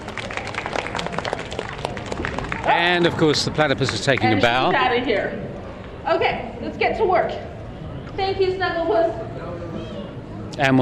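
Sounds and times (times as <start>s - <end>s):
audience applause at a live show: 0.0s - 4.7s
speech: 2.8s - 7.5s, 8.2s - 9.2s, 10.6s - 10.8s.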